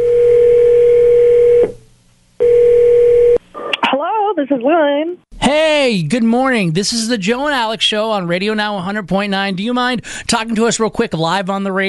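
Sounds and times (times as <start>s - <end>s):
telephone ringing tone on a call: 0.0s - 1.7s, 2.4s - 3.4s
speech: 4.5s - 11.8s.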